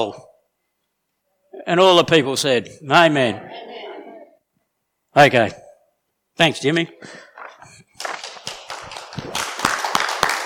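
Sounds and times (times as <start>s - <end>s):
speech: 0.0s - 0.3s, 1.6s - 3.8s, 5.2s - 5.6s, 6.4s - 7.3s
audience clapping: 7.4s - 10.4s.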